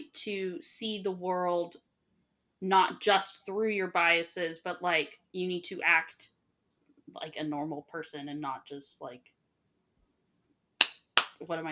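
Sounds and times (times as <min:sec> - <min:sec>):
speech: 0:00.2 - 0:01.9, 0:02.6 - 0:06.4, 0:07.1 - 0:09.4, 0:11.4 - 0:11.7
hand claps: 0:10.8 - 0:11.7.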